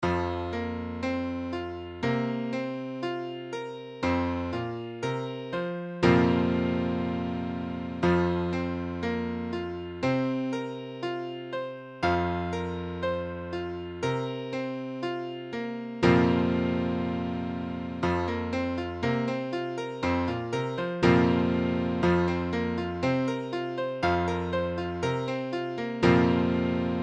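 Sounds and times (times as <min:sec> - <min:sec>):
Fsus4 piano chord: 0:00.0 - 0:27.0.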